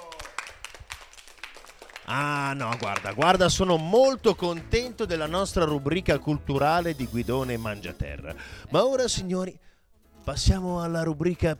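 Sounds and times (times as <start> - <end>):
applause: 0.0 - 5.0
speech: 2.1 - 9.7, 10.3 - 11.5.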